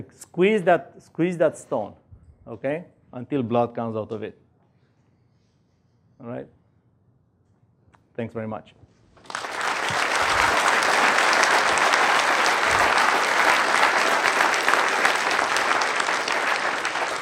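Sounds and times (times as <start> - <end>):
speech: 0.0 - 4.4, 6.2 - 6.6, 8.2 - 8.8
audience applause: 9.2 - 17.2.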